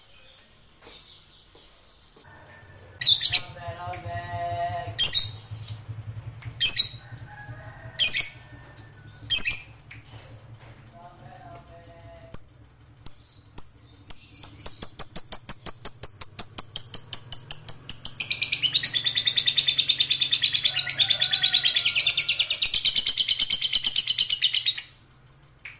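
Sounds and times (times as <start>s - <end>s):
fighter-type lovebird giving a long shrill chattering trill: 3.0s - 3.7s, 5.0s - 5.9s, 6.6s - 7.3s, 8.0s - 9.9s, 12.3s - 25.0s.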